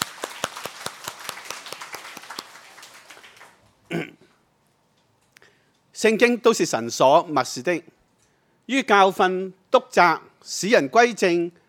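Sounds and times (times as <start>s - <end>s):
audience applause: 0.0s - 3.7s
speech: 3.9s - 4.2s, 6.0s - 8.0s, 8.7s - 11.6s
person coughing: 3.9s - 4.4s.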